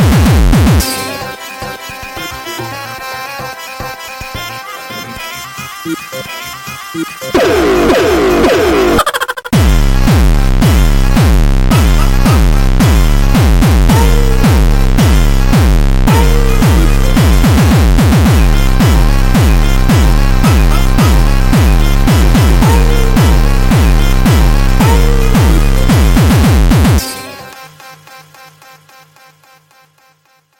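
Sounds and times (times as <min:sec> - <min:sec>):
jumpstyle music: 0:00.0 - 0:02.6, 0:07.0 - 0:27.6.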